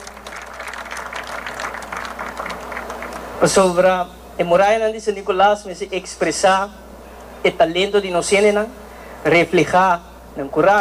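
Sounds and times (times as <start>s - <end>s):
audience applause: 0.0s - 3.5s
speech: 3.4s - 6.8s, 7.4s - 10.8s.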